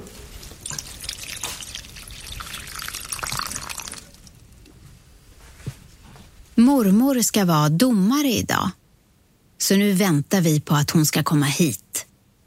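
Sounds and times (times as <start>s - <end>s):
water trickling and dripping: 0.4s - 4.4s
speech: 6.6s - 8.8s, 9.6s - 11.8s.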